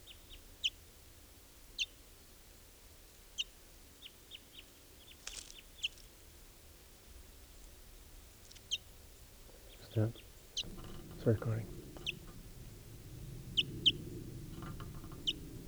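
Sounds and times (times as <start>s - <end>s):
barely fledged bird calling: 9.5s - 15.6s
speech: 10.0s - 10.2s, 11.2s - 11.8s.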